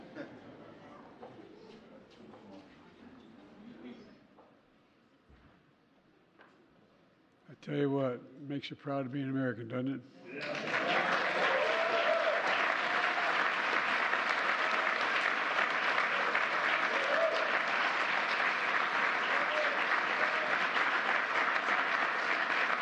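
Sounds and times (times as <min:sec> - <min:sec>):
speech: 0:07.6 - 0:10.8
applause from a large crowd: 0:10.3 - 0:22.7.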